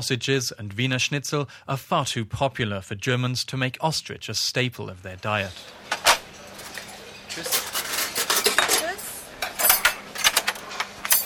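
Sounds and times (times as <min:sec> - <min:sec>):
speech: 0:00.0 - 0:05.9, 0:07.4 - 0:07.6
cutlery and dishes clattering in a company cafeteria in Cologne: 0:05.9 - 0:11.2.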